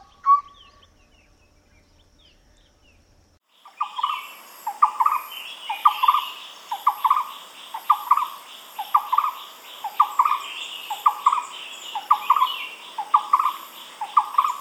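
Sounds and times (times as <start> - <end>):
barbet calling: 3.6 - 14.5.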